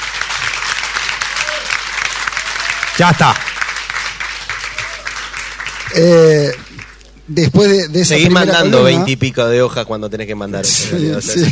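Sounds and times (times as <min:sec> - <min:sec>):
audience applause: 0:00.0 - 0:07.0
speech: 0:03.0 - 0:03.5, 0:05.9 - 0:06.6, 0:07.3 - 0:11.5.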